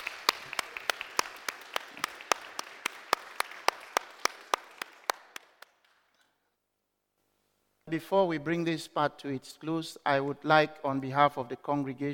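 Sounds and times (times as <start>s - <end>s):
audience clapping: 0.0s - 6.3s
speech: 7.9s - 12.1s.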